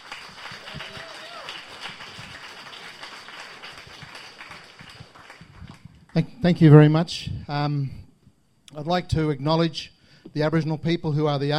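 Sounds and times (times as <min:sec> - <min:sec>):
audience applause: 0:00.0 - 0:05.8
speech: 0:06.2 - 0:08.0, 0:08.8 - 0:11.5.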